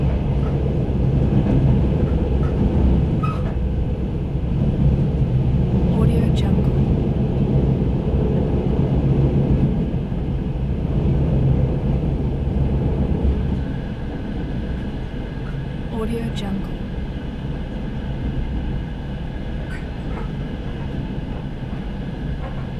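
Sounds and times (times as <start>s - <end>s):
train interior: 0.0s - 22.7s.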